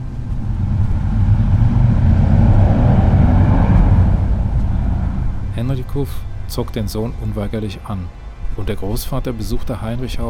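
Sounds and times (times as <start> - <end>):
very loud motorcycle driving past: 0.0 - 6.5
speech: 6.0 - 10.2.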